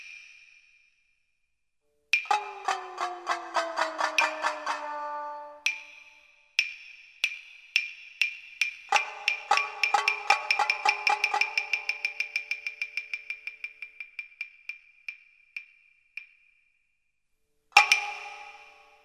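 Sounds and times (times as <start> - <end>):
Tsugaru shamisen playing: 2.3 - 6.1, 8.9 - 13.4, 17.7 - 19.0.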